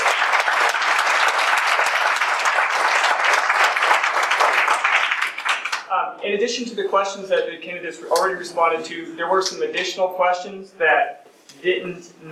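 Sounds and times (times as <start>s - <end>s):
audience applause: 0.0s - 5.9s
speech: 6.2s - 12.3s.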